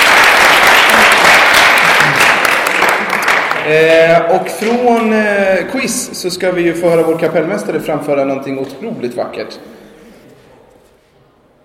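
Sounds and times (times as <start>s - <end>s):
audience applause: 0.0s - 5.1s
speech: 3.7s - 9.8s.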